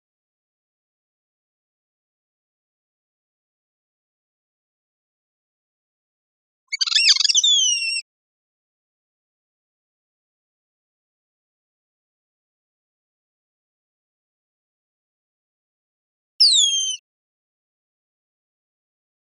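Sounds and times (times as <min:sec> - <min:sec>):
bird calling: 0:06.7 - 0:08.0, 0:16.4 - 0:17.0.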